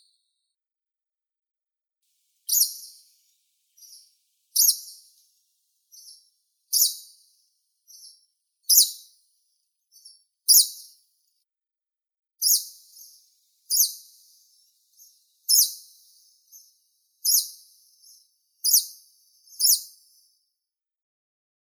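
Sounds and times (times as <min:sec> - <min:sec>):
greenish warbler Phylloscopus trochiloides singing: 0:02.2 - 0:09.2, 0:09.9 - 0:10.9, 0:12.4 - 0:20.0.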